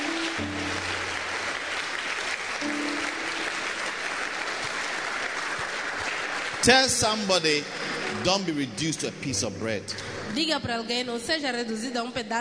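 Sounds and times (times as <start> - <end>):
church congregation clapping for the Lord: 0.0 - 9.4
speech: 0.4 - 0.9, 6.6 - 12.3.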